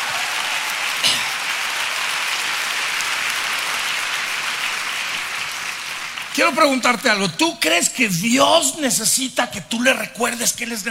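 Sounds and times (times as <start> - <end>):
audience applause: 0.0 - 7.5
speech: 6.4 - 10.9.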